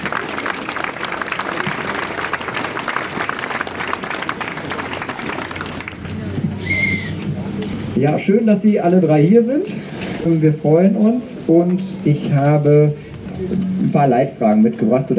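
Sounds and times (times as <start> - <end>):
audience applause: 0.0 - 6.8
high whistle-like tone: 6.6 - 7.2
speech: 8.0 - 15.1.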